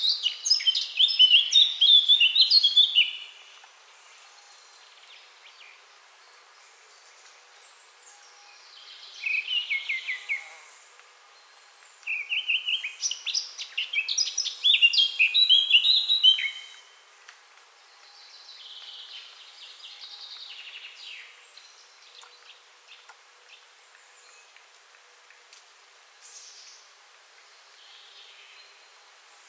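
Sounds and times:
Eurasian blackcap Sylvia atricapilla song: 0:00.0 - 0:03.8, 0:07.2 - 0:10.6, 0:11.8 - 0:25.0.

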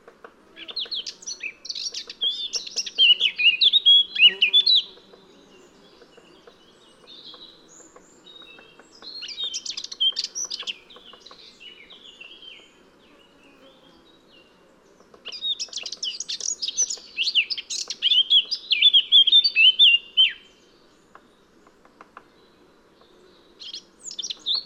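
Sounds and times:
Eurasian blackcap Sylvia atricapilla singing: 0:00.6 - 0:05.0, 0:05.9 - 0:12.6, 0:15.2 - 0:20.4.

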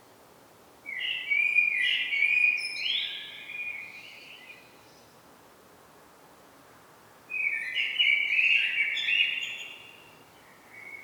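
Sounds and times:
common blackbird Turdus merula song: 0:00.9 - 0:04.8, 0:07.3 - 0:11.0.

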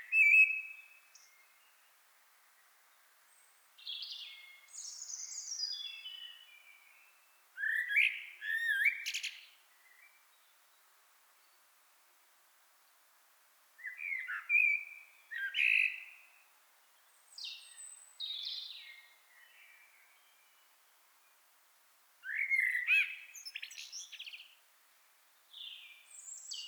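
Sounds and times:
common blackbird Turdus merula singing fluted warbles and squeaky notes: 0:00.0 - 0:01.5, 0:03.8 - 0:06.8, 0:07.6 - 0:10.2, 0:13.8 - 0:16.3, 0:17.4 - 0:20.6, 0:22.2 - 0:24.6, 0:25.5 - 0:26.6.

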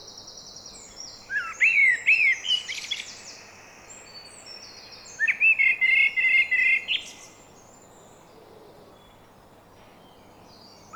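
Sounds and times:
Eurasian blackbird Turdus merula singing: 0:00.0 - 0:08.4, 0:09.0 - 0:10.9.

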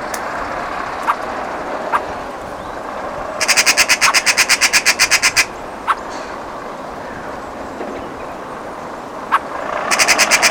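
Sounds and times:
Eurasian magpie Pica pica rattling chatter: 0:00.1 - 0:02.3, 0:03.4 - 0:06.3, 0:09.3 - 0:10.4.

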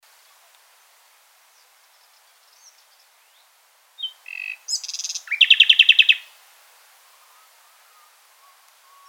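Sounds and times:
common nightingale Luscinia megarhynchos singing: 0:01.6 - 0:06.4, 0:07.1 - 0:09.0.

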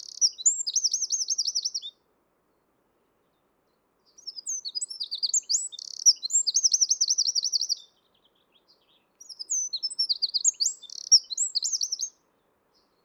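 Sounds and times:
Eurasian wren Troglodytes troglodytes singing: 0:00.0 - 0:01.9, 0:04.1 - 0:12.2.

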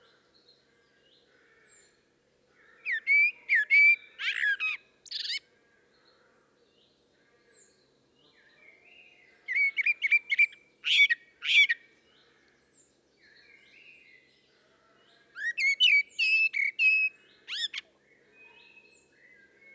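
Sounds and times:
common blackbird singing: 0:02.6 - 0:05.4, 0:07.4 - 0:12.2, 0:12.8 - 0:19.7.

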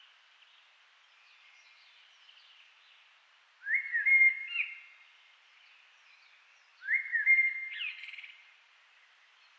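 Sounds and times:
common blackbird Turdus merula singing: 0:03.6 - 0:05.0, 0:06.1 - 0:08.4.

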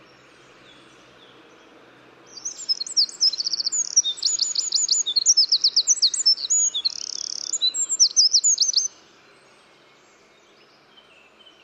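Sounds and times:
Eurasian wren Troglodytes troglodytes singing ringing trills and sharp chips: 0:02.3 - 0:08.9.

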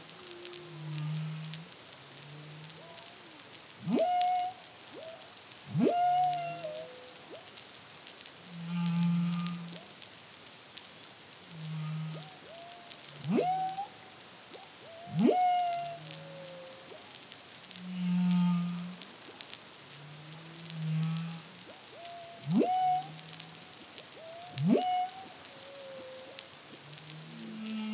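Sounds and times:
faint crackling: 0:00.0 - 0:27.9
humpback whale song: 0:02.2 - 0:07.5, 0:08.5 - 0:09.8, 0:11.5 - 0:14.0, 0:14.6 - 0:17.1, 0:17.8 - 0:19.1, 0:20.0 - 0:27.9.

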